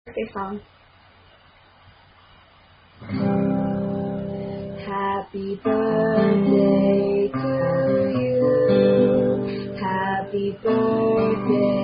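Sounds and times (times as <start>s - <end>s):
birthday song: 2.9s - 11.8s.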